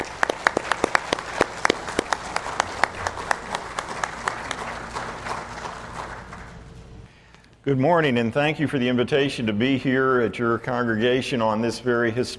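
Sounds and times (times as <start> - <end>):
audience applause: 0.0 - 7.0
speech: 7.7 - 12.3.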